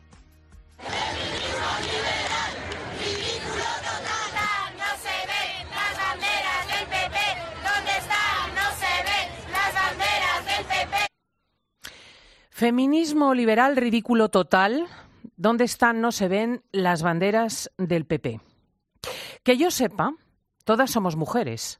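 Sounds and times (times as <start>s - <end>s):
loud protest crowd chanting a slogan: 0.8s - 11.1s
speech: 12.6s - 18.5s, 19.4s - 21.7s.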